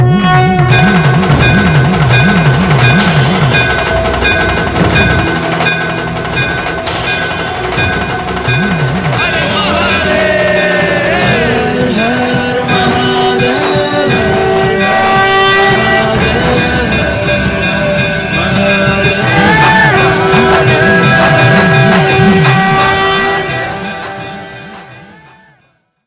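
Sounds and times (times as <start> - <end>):
Hindi bhakti devotional ringtone: 0.2 - 25.6.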